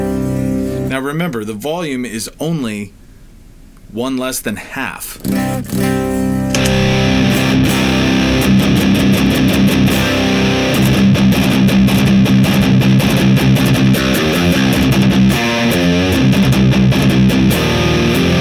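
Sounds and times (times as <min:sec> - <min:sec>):
clean electric guitar through a pedal: 0:00.0 - 0:00.9, 0:05.2 - 0:18.3
speech: 0:00.9 - 0:03.0, 0:03.9 - 0:06.3.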